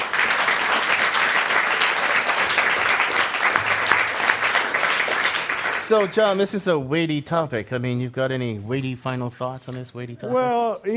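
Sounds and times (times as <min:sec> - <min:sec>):
live audience applause: 0:00.0 - 0:06.5
speech: 0:05.9 - 0:10.9.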